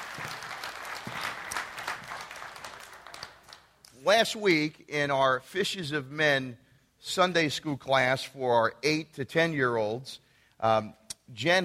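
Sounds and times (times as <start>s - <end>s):
church congregation applause after worship music: 0.0s - 4.2s
speech: 4.0s - 11.6s.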